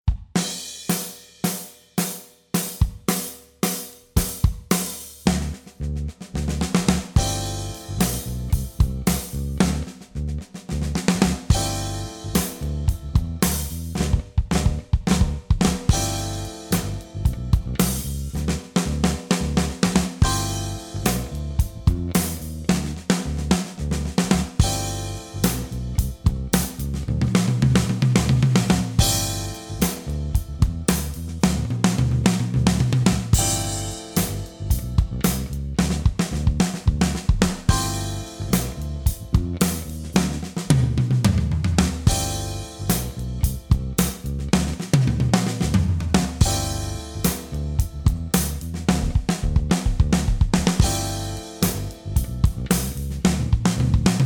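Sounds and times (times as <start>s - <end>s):
pop drum fills: 0.1s - 54.2s.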